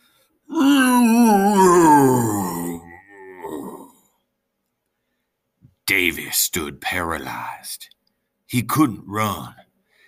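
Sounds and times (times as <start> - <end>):
eerie groaning moan: 0.5 - 4.1
speech: 5.9 - 9.6.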